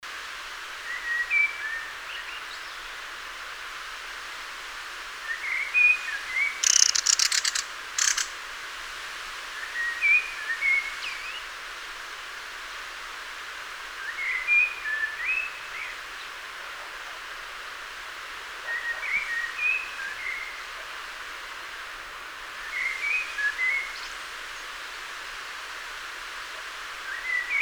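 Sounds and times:
soft background hiss: 0:00.1 - 0:27.5
common blackbird singing: 0:06.5 - 0:08.4.

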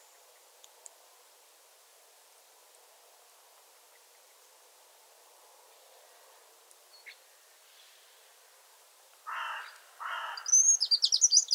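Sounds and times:
Eurasian wren (Troglodytes troglodytes) trilling song: 0:06.9 - 0:07.3, 0:09.3 - 0:11.5.

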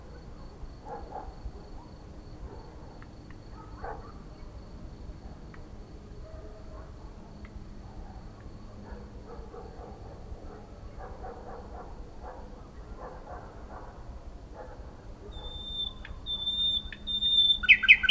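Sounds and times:
common nightingale Luscinia megarhynchos singing: 0:15.3 - 0:18.1.

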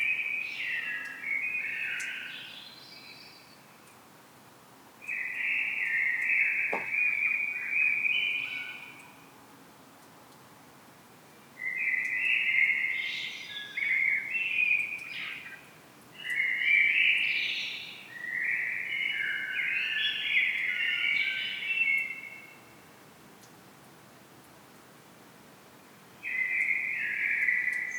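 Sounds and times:
common blackbird singing: 0:00.0 - 0:03.4, 0:05.0 - 0:09.0, 0:11.6 - 0:22.6, 0:26.2 - 0:27.9
faint steady background hiss: 0:00.0 - 0:27.9.

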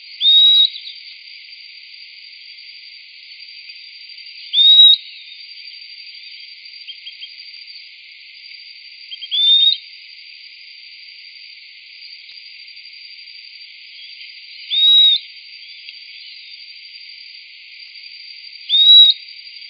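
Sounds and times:
hiss: 0:00.0 - 0:19.6
bird whistling: 0:00.2 - 0:00.9, 0:04.6 - 0:05.0, 0:14.7 - 0:15.2, 0:18.7 - 0:19.2.

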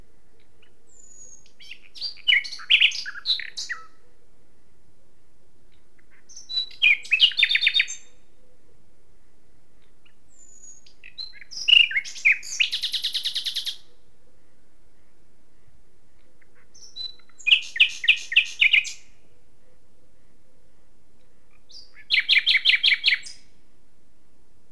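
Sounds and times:
common nightingale chirping song: 0:00.0 - 0:23.8.

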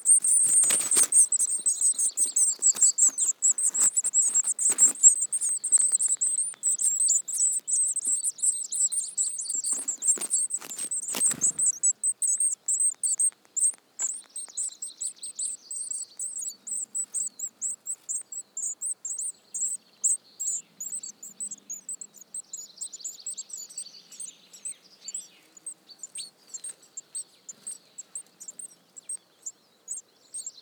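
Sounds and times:
crackling and rustling: 0:00.0 - 0:08.4, 0:09.2 - 0:12.0
Eurasian blue tit calling: 0:00.0 - 0:30.6.

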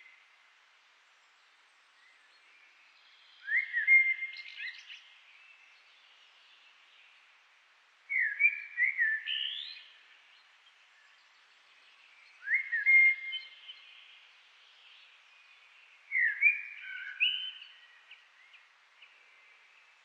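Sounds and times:
Eurasian blackbird song: 0:03.1 - 0:05.1, 0:08.1 - 0:10.0, 0:12.1 - 0:19.6.

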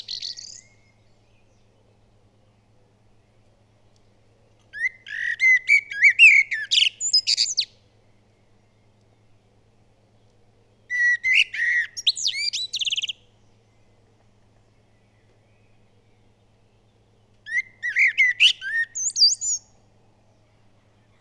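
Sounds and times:
common blackbird singing: 0:00.0 - 0:02.6, 0:04.7 - 0:07.8, 0:10.8 - 0:13.9, 0:14.6 - 0:19.8.

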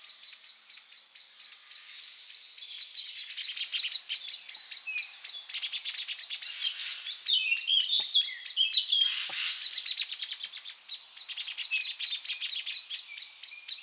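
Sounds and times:
Eurasian blackbird calling: 0:03.2 - 0:13.3.

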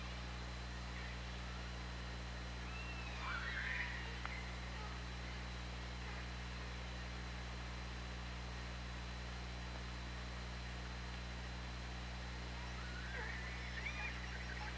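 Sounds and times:
low hum and hiss: 0:00.0 - 0:14.7
orca pulsed call: 0:02.5 - 0:05.4, 0:12.6 - 0:14.7.

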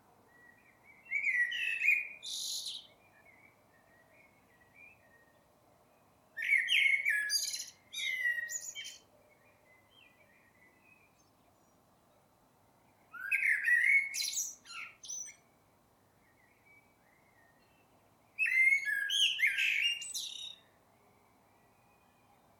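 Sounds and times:
Eurasian blackbird Turdus merula singing mellow fluting phrases: 0:00.4 - 0:05.4, 0:06.4 - 0:11.3, 0:13.1 - 0:15.4, 0:18.4 - 0:20.7.

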